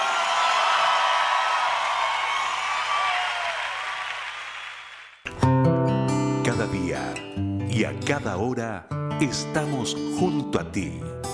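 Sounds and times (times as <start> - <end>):
loud crowd applause: 0.0 - 5.3
music: 5.3 - 11.3
speech: 6.9 - 11.2.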